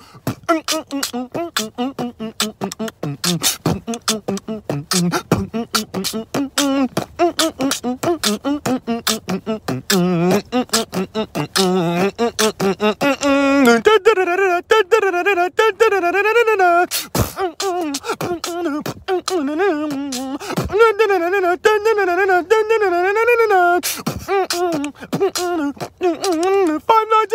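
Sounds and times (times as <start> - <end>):
beatbox: 0.2 - 27.3.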